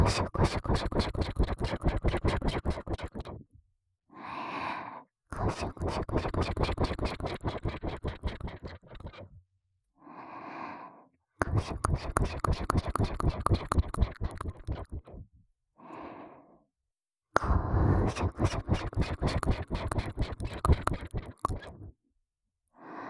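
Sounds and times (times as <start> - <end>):
ASMR ear cleaning on the right ear: 0.2 - 3.3, 5.3 - 9.2, 11.4 - 15.2, 17.4 - 21.9.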